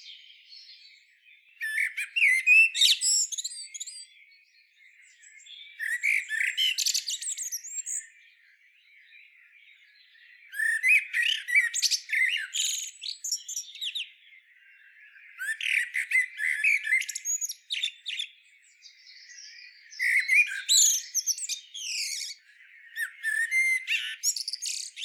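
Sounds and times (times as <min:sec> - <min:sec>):
common blackbird singing fluty phrases with squeaky high twitters: 0:00.0 - 0:25.0.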